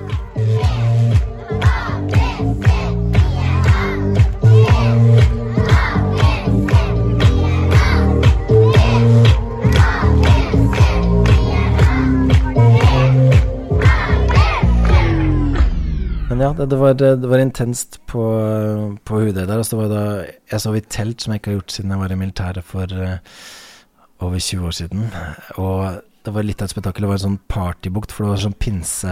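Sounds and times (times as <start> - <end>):
crowd shouting and chanting at recorded school stage performance: 0.0 - 15.8
speech: 16.6 - 23.6, 24.2 - 29.1.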